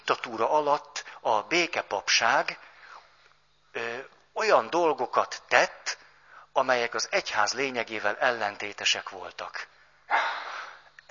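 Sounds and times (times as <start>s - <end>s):
speech: 0.1s - 2.7s, 3.7s - 5.9s, 6.6s - 9.7s
sneeze: 10.1s - 10.8s.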